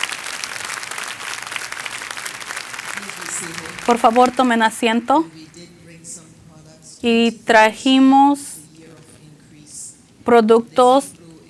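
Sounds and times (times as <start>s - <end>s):
crowd applauding: 0.0s - 5.6s
speech: 3.4s - 5.4s, 7.0s - 8.5s, 10.3s - 11.2s.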